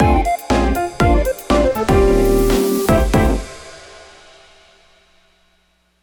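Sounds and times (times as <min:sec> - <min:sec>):
music stinger: 0:00.0 - 0:04.4.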